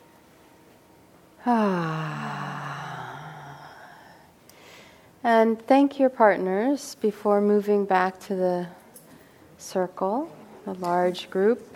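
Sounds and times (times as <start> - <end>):
speech: 1.4 - 2.2, 5.2 - 8.8, 9.6 - 11.7
deep breath let out as a long voiced sigh: 1.4 - 5.0.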